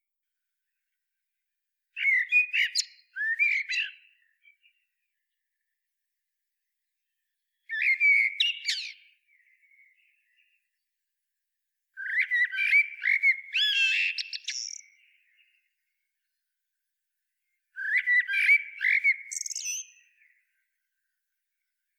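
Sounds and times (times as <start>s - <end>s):
Turdus merula common blackbird singing warbling phrases: 2.0s - 4.8s, 7.7s - 10.6s, 12.0s - 15.6s, 17.8s - 20.3s.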